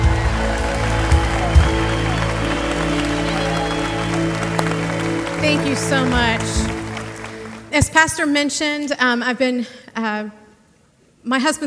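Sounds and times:
church congregation applauding a guest welcomed to the stage: 0.0s - 8.5s
speech: 5.8s - 6.7s, 7.8s - 10.4s, 11.2s - 11.6s.

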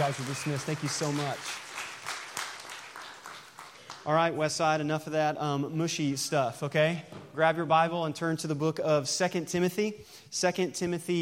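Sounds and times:
speech: 0.0s - 1.8s, 4.0s - 11.2s
audience applause: 0.0s - 4.2s.

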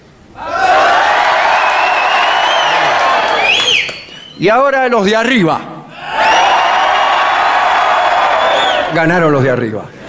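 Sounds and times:
live audience shouting on cue: 0.4s - 4.0s, 6.0s - 9.0s
speech: 4.4s - 5.7s, 9.0s - 10.0s.

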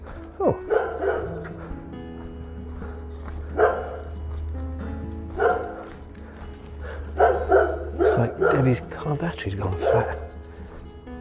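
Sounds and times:
speech: 0.4s - 0.8s, 8.6s - 10.2s
dog barking: 0.4s - 1.7s, 3.4s - 4.3s, 5.3s - 6.0s, 6.8s - 8.9s, 9.7s - 10.3s.

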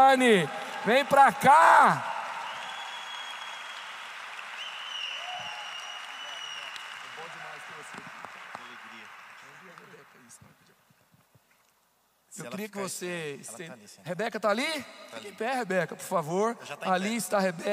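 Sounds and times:
speech: 0.0s - 2.1s, 12.4s - 17.7s
audience applause: 0.0s - 10.4s.

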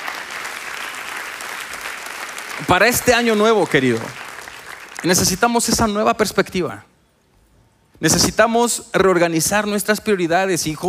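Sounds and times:
church congregation clapping during a sermon: 0.0s - 6.2s
speech: 2.6s - 4.2s, 5.0s - 6.9s, 8.0s - 10.8s.

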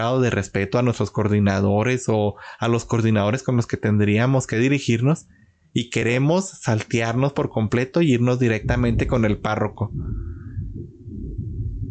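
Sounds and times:
speech: 0.0s - 10.4s
thunder rumbling: 8.5s - 11.8s.

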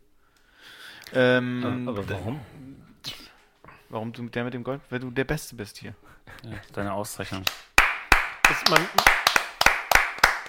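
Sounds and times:
speech: 1.1s - 2.9s, 3.9s - 7.6s, 8.5s - 9.2s
hand clapping: 7.3s - 10.4s.

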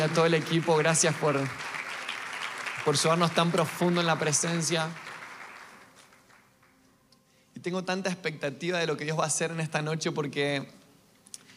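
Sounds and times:
speech: 0.0s - 1.7s, 2.8s - 5.1s, 7.6s - 10.8s
audience applause: 0.0s - 6.7s.

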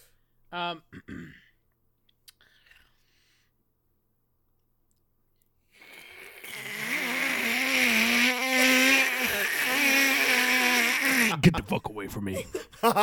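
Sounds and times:
speech: 0.5s - 1.4s, 11.5s - 13.0s
person imitating a Raticate Pokémon cry: 6.4s - 11.4s.

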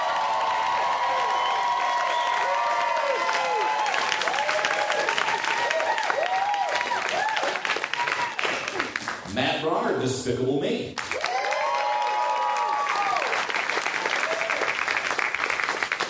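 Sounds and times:
whoops and cheers: 0.0s - 8.8s, 11.1s - 14.8s
crowd applause: 0.0s - 9.3s, 11.0s - 16.0s
speech: 10.0s - 11.0s.

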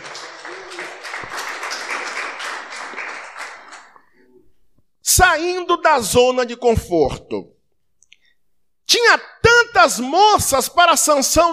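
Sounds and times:
audience applause: 0.0s - 4.1s
speech: 5.2s - 7.6s, 9.0s - 11.5s.

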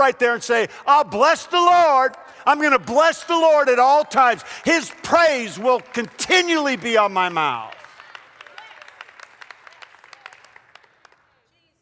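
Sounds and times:
speech: 0.0s - 7.8s
audience clapping: 3.6s - 11.5s.

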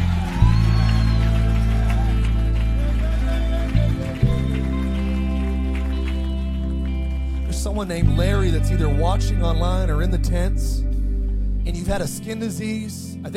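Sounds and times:
audience shouting: 0.0s - 3.9s
audience clapping: 0.0s - 8.8s
speech: 7.8s - 10.9s, 11.6s - 13.3s.

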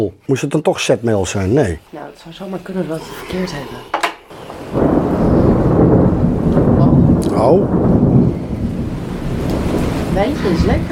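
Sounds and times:
speech: 0.0s - 4.0s, 7.4s - 7.9s, 10.2s - 10.8s
rain hissing: 1.0s - 10.8s
close thunder clap and rumble: 3.2s - 10.8s.

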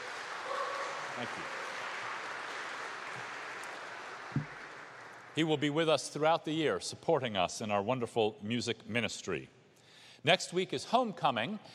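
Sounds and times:
congregation applauding at a Sunday church service: 0.0s - 5.8s
speech: 1.2s - 1.6s, 5.4s - 9.6s, 10.2s - 11.7s.

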